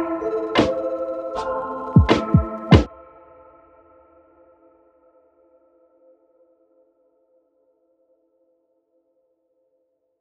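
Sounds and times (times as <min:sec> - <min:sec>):
lofi hip hop with Javanese mallets: 0:00.0 - 0:02.9.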